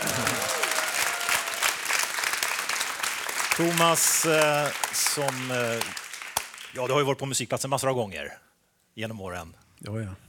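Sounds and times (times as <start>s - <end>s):
audience applause: 0.0s - 6.9s
speech: 3.6s - 6.0s, 6.8s - 8.4s, 9.0s - 10.2s.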